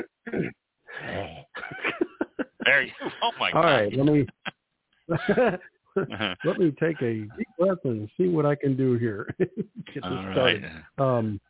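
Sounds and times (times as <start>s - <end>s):
person clearing throat: 0.0s - 1.8s, 6.1s - 7.4s, 9.9s - 10.7s
laughter: 1.6s - 4.5s, 5.1s - 11.3s
speech: 2.7s - 4.4s, 5.1s - 11.4s.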